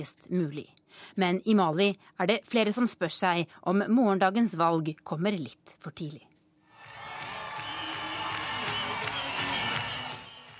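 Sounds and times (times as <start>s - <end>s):
speech: 0.0s - 6.3s
clapping: 6.8s - 10.5s
large stadium crowd cheering: 6.8s - 10.5s
whistles: 7.6s - 10.5s.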